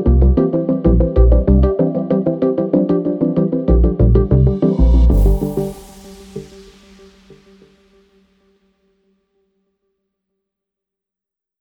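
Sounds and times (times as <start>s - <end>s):
abstract technology groovy background music: 0.3s - 7.6s.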